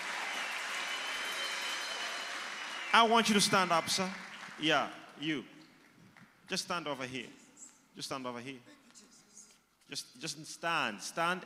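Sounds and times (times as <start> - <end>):
audience clapping hands: 0.0 - 5.2
speech: 2.9 - 5.6, 6.5 - 7.4, 8.0 - 8.8, 9.9 - 11.4.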